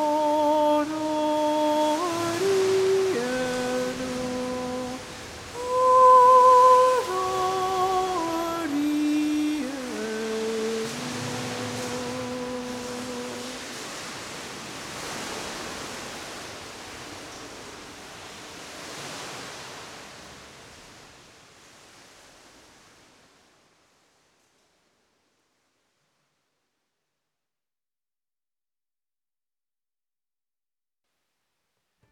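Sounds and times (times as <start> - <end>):
person singing a Gaelic song: 0.0 - 13.9.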